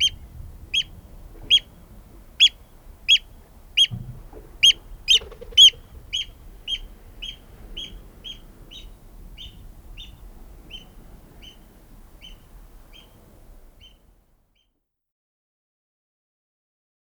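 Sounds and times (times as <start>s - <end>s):
oystercatcher calling: 2.4s - 4.0s, 4.6s - 11.6s.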